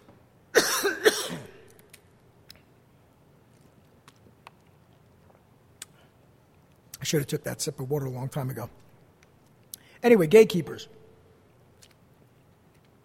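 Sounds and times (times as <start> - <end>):
coughing: 0.5 - 1.8
throat clearing: 0.6 - 1.7
speech: 7.1 - 8.9, 10.0 - 11.0.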